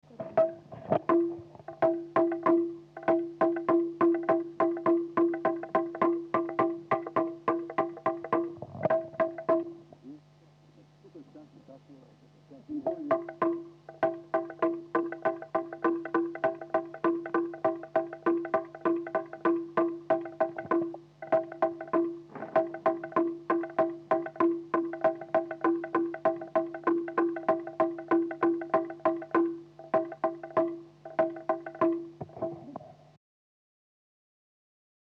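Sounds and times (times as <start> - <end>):
drum tune: 0.4 - 9.9, 12.8 - 32.6.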